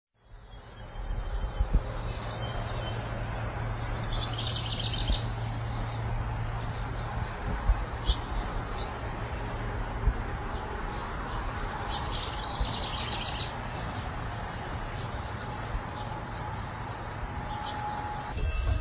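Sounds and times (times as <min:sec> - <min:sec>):
birds singing: 0:00.2 - 0:18.7.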